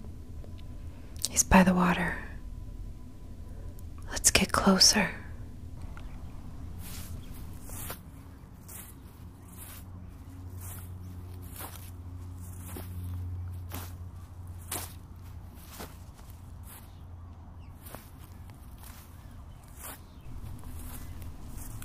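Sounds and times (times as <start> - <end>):
low wind rumble: 0.0 - 21.8
speech: 1.4 - 2.3, 4.4 - 5.2
footsteps squelching on soft wet ground: 6.7 - 17.1, 17.7 - 21.8.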